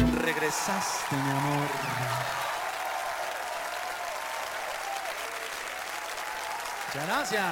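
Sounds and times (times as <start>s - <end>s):
audience applause: 0.1s - 7.4s
speech: 0.3s - 2.4s, 6.9s - 7.4s.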